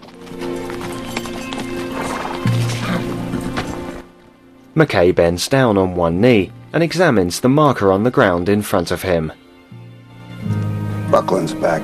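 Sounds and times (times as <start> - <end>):
horse hooves clopping as its rider dismounts: 0.0 - 4.3
horse whinny: 1.8 - 3.6
speech: 4.8 - 9.4, 11.2 - 11.8.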